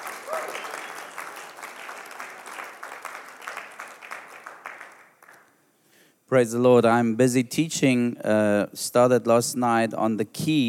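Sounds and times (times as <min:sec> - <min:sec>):
audience clapping: 0:00.0 - 0:05.6
speech: 0:06.3 - 0:10.6.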